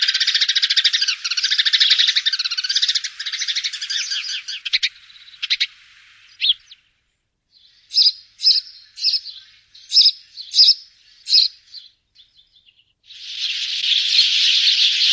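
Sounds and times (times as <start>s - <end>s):
bird chirps: 0.0s - 15.1s.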